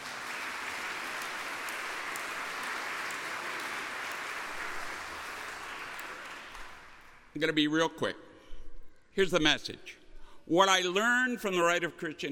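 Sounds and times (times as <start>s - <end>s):
audience applause: 0.0s - 7.4s
speech: 7.4s - 8.3s, 9.2s - 12.2s.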